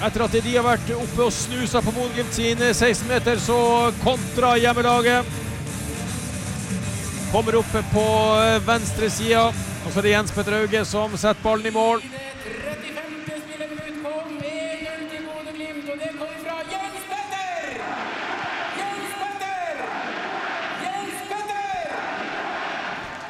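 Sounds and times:
stadium crowd cheering a goal: 0.0s - 5.3s, 7.3s - 23.2s
speech: 0.0s - 5.5s, 7.3s - 12.6s
crowd chanting: 17.7s - 23.2s.

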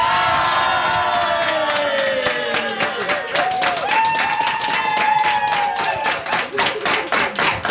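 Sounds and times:
crowd cheering and whooping at a celebration at Kvitnes farm: 0.0s - 6.8s
continuous applause at a celebration at Kvitnes farm: 0.0s - 7.7s.

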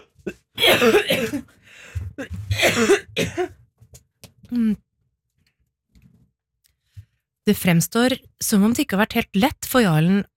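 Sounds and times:
person with a sore throat clearing throat: 0.0s - 1.5s, 2.2s - 3.5s
person with a sore throat coughing: 0.0s - 1.6s, 2.2s - 3.6s
speech: 0.8s - 1.6s, 2.2s - 3.6s, 7.5s - 10.3s.

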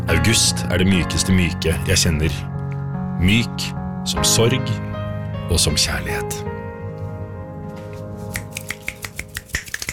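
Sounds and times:
speech: 0.1s - 2.5s, 3.2s - 4.9s, 5.5s - 6.6s
finger snapping after a poem reading: 8.3s - 9.9s.

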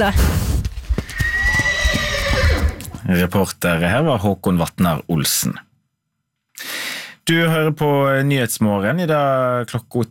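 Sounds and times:
speech: 0.0s - 0.4s, 3.1s - 5.7s, 7.2s - 10.0s
fjord horse neighing: 1.0s - 3.0s.

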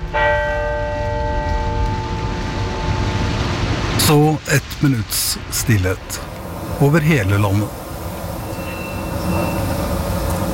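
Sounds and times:
church bell strikes: 0.0s - 3.4s
speech: 4.1s - 7.8s, 9.2s - 9.8s.

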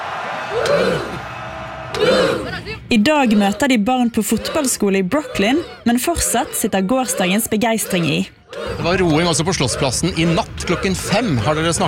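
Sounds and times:
loud whoops: 0.0s - 2.5s
crowd cheering after World Cup qualification: 0.0s - 2.8s
speech: 2.7s - 11.8s.

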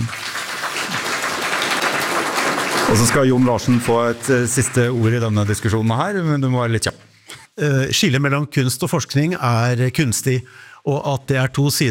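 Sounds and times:
audience applause at a Norwegian panel discussion on research and art: 0.0s - 6.3s
speech: 2.9s - 7.0s, 7.6s - 11.8s.

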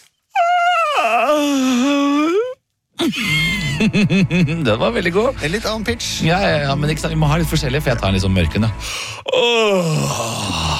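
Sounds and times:
person yawning: 0.3s - 3.8s, 9.1s - 10.7s
laughter: 3.0s - 5.4s
speech: 3.1s - 10.7s.

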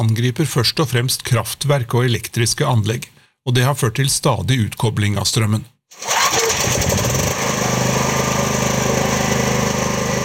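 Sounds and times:
speech: 0.0s - 6.2s
generator running outside a house: 6.0s - 10.2s.

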